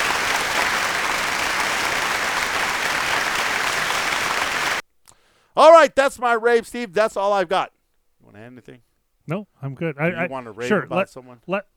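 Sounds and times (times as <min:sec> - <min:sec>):
round of applause: 0:00.0 - 0:04.8
speech: 0:05.6 - 0:11.7.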